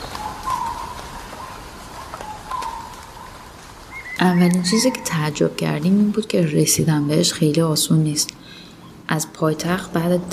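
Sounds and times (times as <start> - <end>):
steady hiss of insects or rain in the Amazon rainforest: 0.0 - 5.5
bird calls in the Amazon rainforest: 0.0 - 7.8
speech: 4.2 - 8.3, 9.1 - 10.3.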